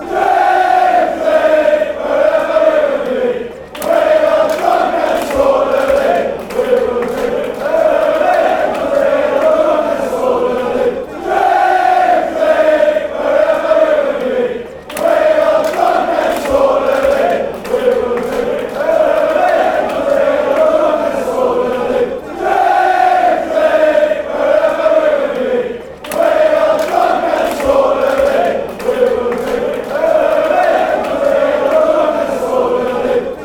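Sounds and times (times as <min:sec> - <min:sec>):
crowd chanting: 0:00.0 - 0:33.4.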